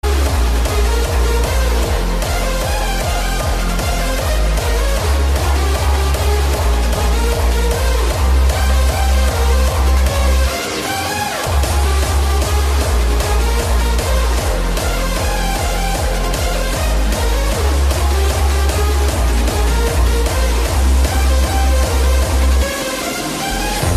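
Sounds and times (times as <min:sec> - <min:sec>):
trance music: 0:00.0 - 0:23.9.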